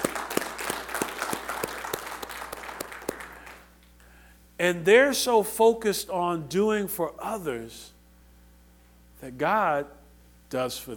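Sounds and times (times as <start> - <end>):
audience clapping: 0.0 - 3.8
speech: 4.6 - 8.0, 9.2 - 10.9.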